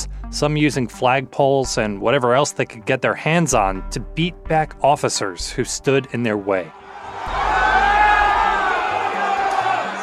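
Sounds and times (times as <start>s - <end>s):
speech: 0.3s - 7.4s
angry crowd shouting at the Capitol riot: 6.8s - 10.0s.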